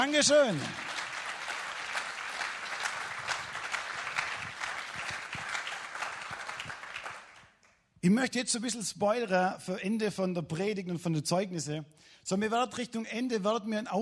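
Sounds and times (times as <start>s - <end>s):
speech: 0.0s - 0.9s, 8.0s - 13.9s
audience applause: 0.0s - 7.6s.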